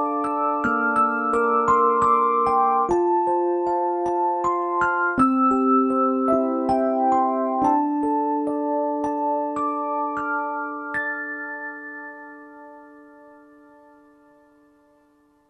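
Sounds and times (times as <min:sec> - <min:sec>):
Rhodes electric piano: 0:00.0 - 0:12.4.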